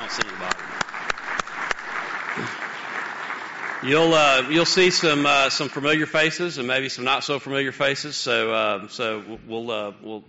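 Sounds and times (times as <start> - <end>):
round of applause: 0.0 - 6.2
speech: 0.1 - 0.7, 3.8 - 10.2.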